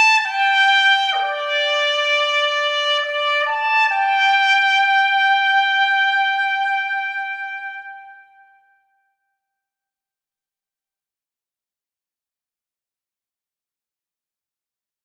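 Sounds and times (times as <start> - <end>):
military trumpet: 0.0 - 8.8.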